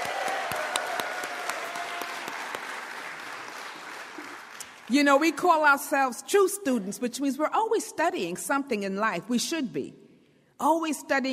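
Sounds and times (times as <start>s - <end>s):
round of applause: 0.0s - 4.9s
speech: 4.9s - 10.0s, 10.6s - 11.3s.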